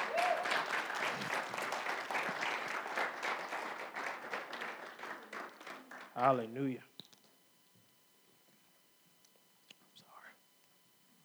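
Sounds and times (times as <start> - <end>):
audience clapping hands in praise: 0.0 - 6.7
speech: 6.2 - 6.9.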